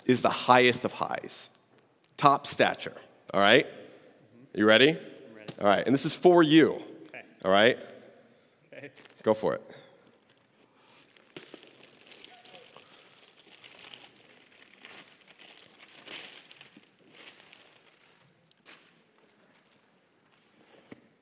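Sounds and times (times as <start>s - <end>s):
speech: 0.1s - 1.6s, 2.2s - 3.8s, 4.5s - 7.9s, 8.8s - 9.8s
paper takeout food bag crinkling and rustling: 10.1s - 21.0s.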